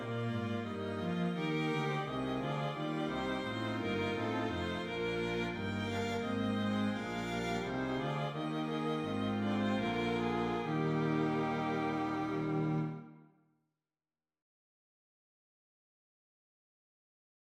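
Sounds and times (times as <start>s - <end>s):
strings playing a hymn: 0.0s - 13.2s.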